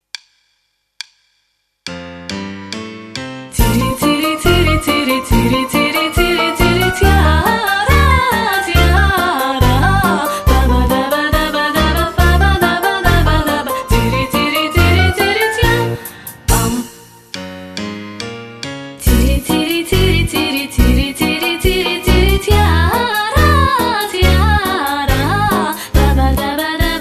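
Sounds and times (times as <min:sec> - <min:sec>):
jazz vocal warm-up: 0:03.6 - 0:17.2, 0:19.0 - 0:26.9.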